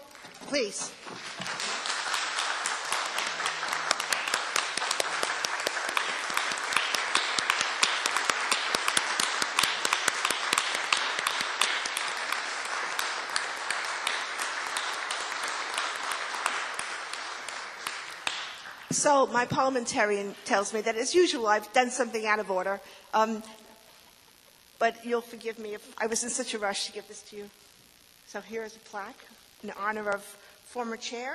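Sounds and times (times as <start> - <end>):
speech: 0.5 - 1.5, 19.0 - 23.6, 24.8 - 27.6, 28.3 - 31.3
round of applause: 1.0 - 19.0.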